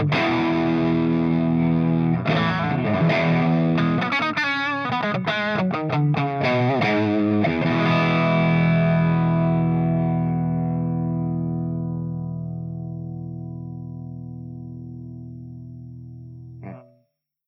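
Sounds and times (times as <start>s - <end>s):
Marshall JCM800 CH2 drive guitar amp: 0.0s - 17.0s.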